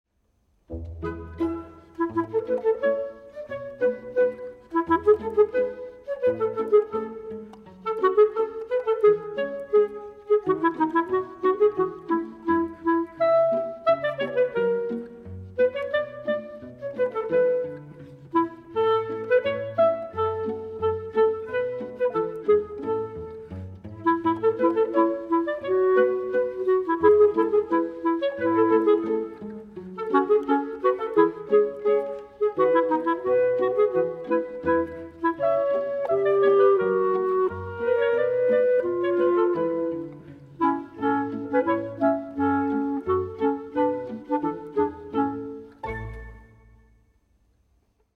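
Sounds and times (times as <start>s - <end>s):
clarinet: 0.6s - 47.2s.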